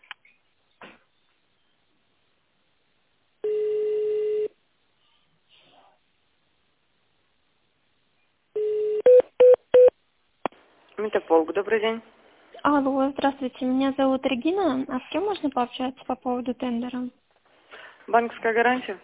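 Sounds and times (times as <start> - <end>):
telephone extension dialing tone: 3.4 - 4.5, 8.6 - 9.9
keypad beeps: 9.0 - 9.9
speech: 11.0 - 17.2, 18.1 - 19.0.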